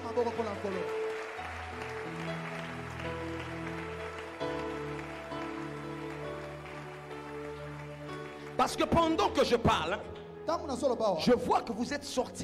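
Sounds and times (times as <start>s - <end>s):
church congregation applauding: 0.0s - 10.1s
speech: 0.2s - 1.0s, 8.6s - 12.4s
sustained musical tones: 0.8s - 10.6s.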